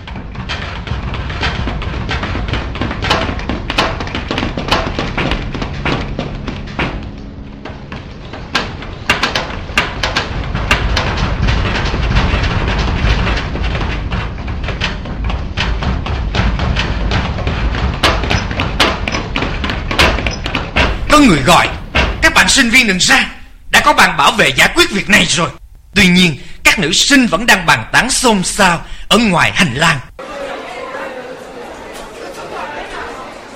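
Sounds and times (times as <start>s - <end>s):
footsteps running down a staircase: 0.0s - 25.3s
speech: 21.4s - 21.7s, 22.4s - 23.3s, 23.9s - 30.1s.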